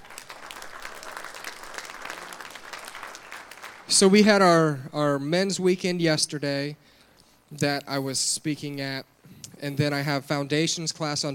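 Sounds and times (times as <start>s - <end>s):
audience applause: 0.0s - 3.9s
speech: 3.9s - 6.9s, 7.5s - 11.3s.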